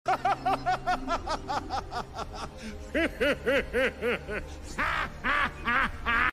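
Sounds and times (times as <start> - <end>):
person laughing: 0.1 - 6.3.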